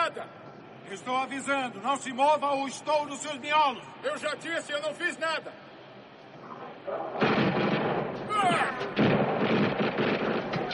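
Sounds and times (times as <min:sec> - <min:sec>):
speech: 0:00.3 - 0:05.6, 0:06.9 - 0:07.3
gunfire bursts: 0:07.2 - 0:10.7.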